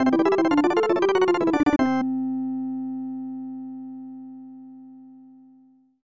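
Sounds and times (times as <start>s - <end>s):
jingle: 0.0s - 2.0s.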